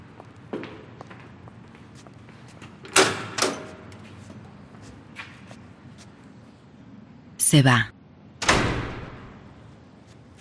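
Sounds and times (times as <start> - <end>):
soft irregular footsteps: 0.0 - 2.9, 3.6 - 6.3, 10.0 - 10.3
speech: 7.5 - 7.9.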